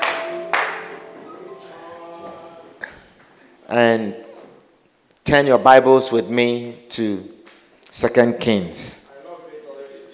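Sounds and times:
audience clapping hands: 0.0s - 1.2s
soft sustained musical tones: 0.0s - 2.8s
speech: 3.7s - 4.3s, 5.3s - 9.0s.

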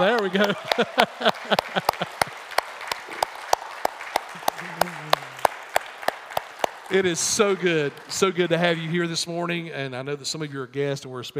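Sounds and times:
speech: 0.0s - 2.2s, 6.9s - 11.3s
laughter: 0.0s - 3.2s, 4.4s - 5.4s
audience applauding standing mothers: 0.0s - 9.6s.

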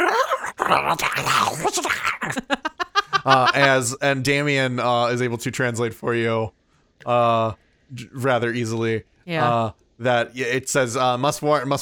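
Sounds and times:
person voicing a dragon's growling and hissing: 0.0s - 2.5s
speech: 0.7s - 2.6s, 3.2s - 11.7s
laughter: 1.0s - 4.0s.

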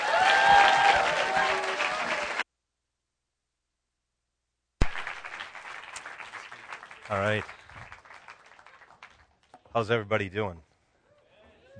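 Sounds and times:
audience applause: 0.0s - 2.4s, 4.8s - 9.4s
speech: 7.1s - 7.6s, 9.8s - 10.7s.

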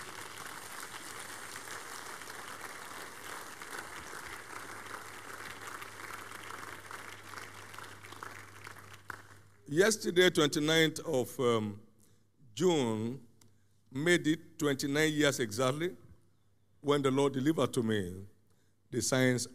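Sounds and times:
audience clapping: 0.0s - 9.7s
speech: 9.7s - 11.8s, 12.6s - 13.3s, 13.9s - 16.0s, 16.8s - 18.3s, 18.9s - 19.5s.

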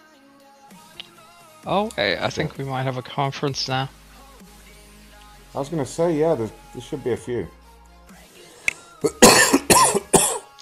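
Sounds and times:
speech: 1.6s - 4.0s, 5.6s - 7.6s
harsh raspy coughs: 8.7s - 10.5s.

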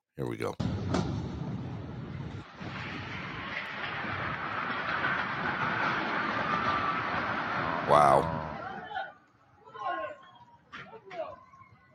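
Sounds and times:
speech: 0.2s - 1.3s
explosion from an Israeli military strike on a building in downtown Gaza: 0.6s - 8.8s.

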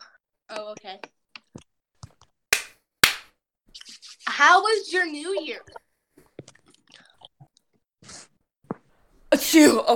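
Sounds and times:
speech: 0.5s - 1.6s, 4.4s - 5.8s, 9.5s - 9.9s
chewing steak: 5.7s - 8.3s.

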